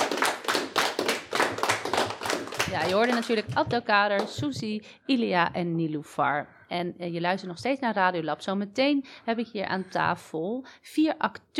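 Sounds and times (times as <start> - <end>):
applause for the guests: 0.0 - 4.4
speech: 2.7 - 11.5.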